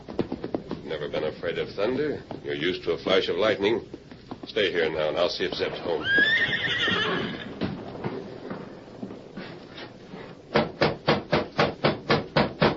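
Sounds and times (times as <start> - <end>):
horse stamping its hooves: 0.0 - 12.7
speech: 0.9 - 7.4
nervous horse giving a shrill wavering whinny: 5.8 - 8.0.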